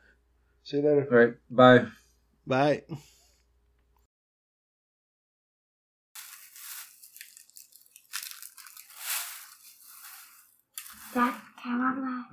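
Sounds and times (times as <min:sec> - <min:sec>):
speech: 0:00.7 - 0:03.2, 0:11.1 - 0:12.3
plastic bag crinkling near microphone: 0:06.2 - 0:11.5.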